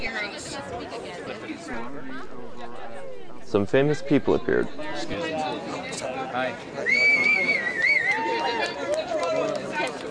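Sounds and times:
dense protest crowd chatter: 0:00.0 - 0:10.0
speech: 0:01.8 - 0:05.3.

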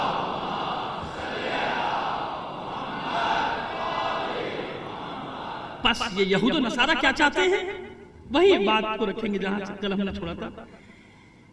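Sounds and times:
congregation chanting a salawat slogan in unison: 0:00.0 - 0:05.9
speech: 0:05.9 - 0:10.8.

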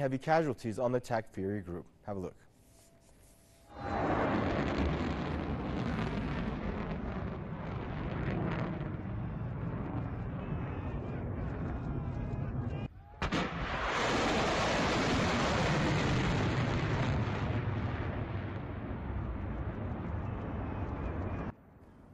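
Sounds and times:
speech: 0:00.0 - 0:02.5
medium-range surface-to-surface missiles launched from western Iran: 0:03.7 - 0:11.9, 0:12.5 - 0:21.4.

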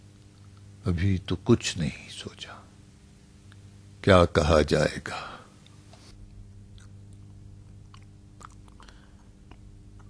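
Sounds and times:
low hum: 0:00.0 - 0:10.0
speech: 0:00.8 - 0:02.7, 0:04.0 - 0:05.4
person chewing camel kidneys: 0:06.6 - 0:10.0.

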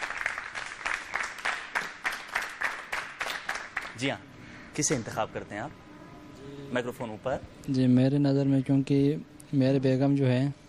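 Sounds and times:
audience applause: 0:00.0 - 0:04.1
speech: 0:04.0 - 0:05.8, 0:06.4 - 0:10.6.

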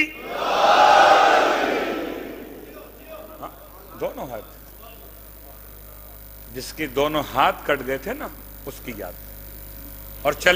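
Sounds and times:
crowd answering a chant: 0:00.0 - 0:03.4
speech: 0:06.6 - 0:09.3, 0:10.2 - 0:10.5.

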